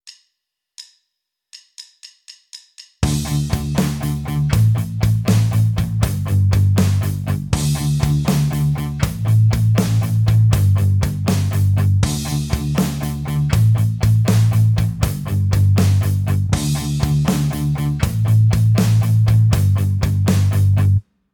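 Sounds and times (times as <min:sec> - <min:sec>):
guitar tapped harmonics: 0:03.0 - 0:21.0.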